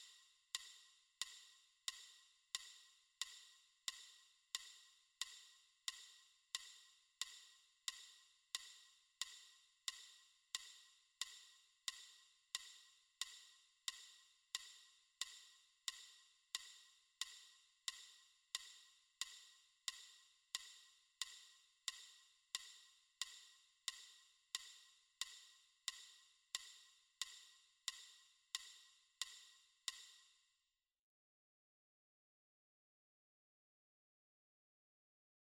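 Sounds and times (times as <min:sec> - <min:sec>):
metronome ticking: 0:00.0 - 0:30.3.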